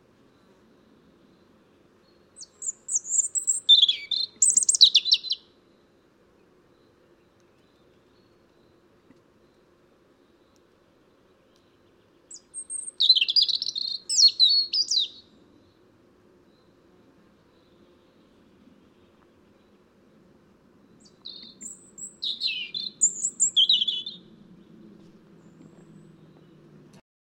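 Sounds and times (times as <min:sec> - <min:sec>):
European robin (Erithacus rubecula) song with high warbled phrases: 0:02.4 - 0:05.5, 0:12.3 - 0:15.3, 0:21.0 - 0:24.3.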